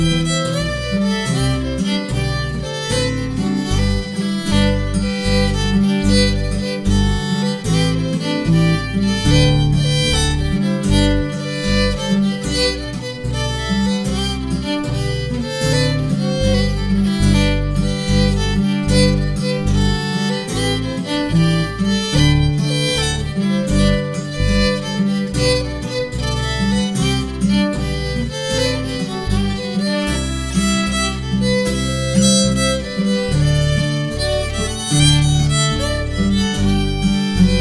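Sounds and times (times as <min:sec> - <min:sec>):
guitar playing tune harmony: 0:00.0 - 0:37.6.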